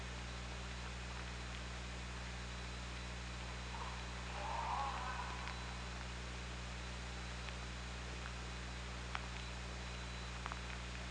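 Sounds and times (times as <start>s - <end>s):
steady low hydrophone hum and hiss: 0.0s - 11.0s
orca call: 3.6s - 5.9s.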